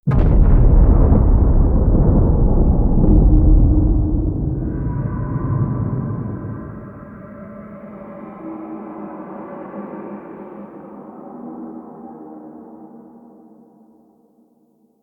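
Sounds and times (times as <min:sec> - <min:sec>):
underground city cave collapse rumble: 0:00.0 - 0:07.5.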